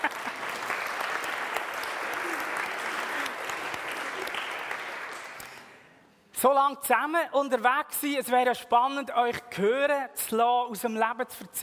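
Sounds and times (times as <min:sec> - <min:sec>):
audience applause: 0:00.0 - 0:05.6
speech: 0:06.4 - 0:11.6.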